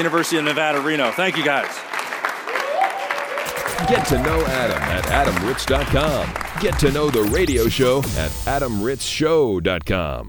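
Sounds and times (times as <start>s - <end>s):
speech: 0.0s - 2.0s, 3.8s - 10.2s
audience applause: 0.0s - 6.8s.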